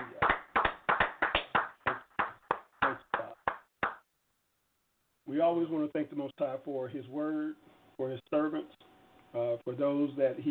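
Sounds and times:
audience hand clapping: 0:00.0 - 0:04.1
speech: 0:05.4 - 0:10.4.

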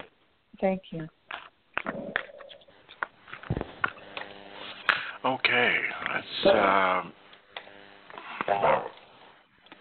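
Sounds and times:
speech: 0:00.6 - 0:01.2, 0:05.2 - 0:07.2
dogs barking: 0:08.4 - 0:09.0.

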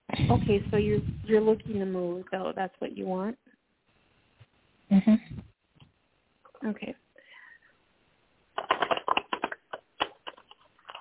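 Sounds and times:
speech: 0:00.3 - 0:03.4, 0:06.6 - 0:07.0
deck of cards being shuffled: 0:08.6 - 0:10.9.

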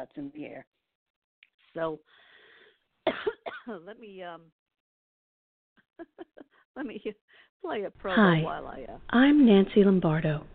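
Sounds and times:
speech: 0:00.0 - 0:00.8, 0:01.7 - 0:02.3, 0:03.1 - 0:04.6, 0:06.0 - 0:10.5
person coughing: 0:03.1 - 0:03.8
laughter: 0:06.0 - 0:06.5.

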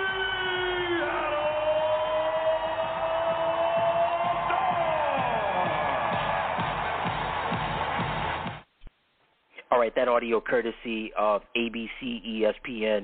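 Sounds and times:
crowd roaring at Climate Pledge Arena in downtown Seattle for the Seattle Storm: 0:00.0 - 0:08.6
rhythmic thumping: 0:01.7 - 0:08.7
speech: 0:10.0 - 0:13.0.

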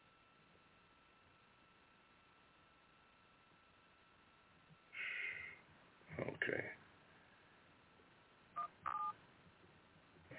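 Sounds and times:
breathy noisy burst: 0:04.9 - 0:05.7
phone keypad dialing tones: 0:08.6 - 0:09.2.

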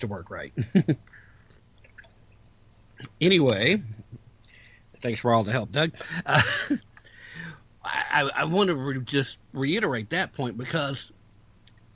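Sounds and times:
speech: 0:00.0 - 0:01.2, 0:03.2 - 0:04.0, 0:05.0 - 0:06.9, 0:07.9 - 0:11.2
low steady hum: 0:00.0 - 0:11.9
quick sip of a drink with slurping and swallowing: 0:01.8 - 0:02.4.

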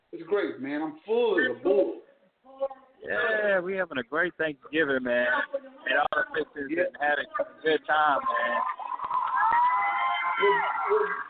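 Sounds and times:
speech: 0:00.1 - 0:02.0, 0:02.6 - 0:08.8, 0:10.4 - 0:11.2
people screaming and cheering: 0:08.2 - 0:11.2.

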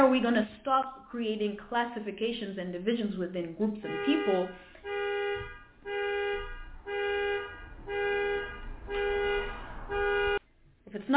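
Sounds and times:
speech: 0:00.0 - 0:05.0
car alarm going off: 0:03.8 - 0:10.4.

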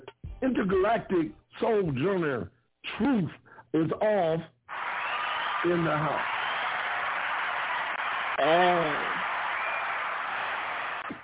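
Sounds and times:
speech: 0:00.4 - 0:04.6, 0:05.6 - 0:06.3, 0:08.4 - 0:09.1
crowd yelling and cheering: 0:04.7 - 0:11.2.

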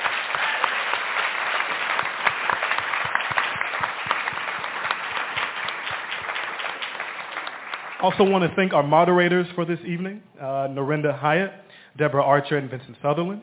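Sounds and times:
audience applause: 0:00.0 - 0:08.7
speech: 0:08.0 - 0:13.4.

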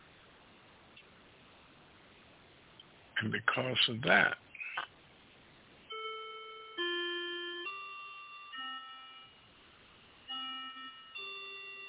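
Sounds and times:
speech: 0:03.2 - 0:04.4
melodic bell chime: 0:05.9 - 0:09.5, 0:10.3 - 0:11.8.

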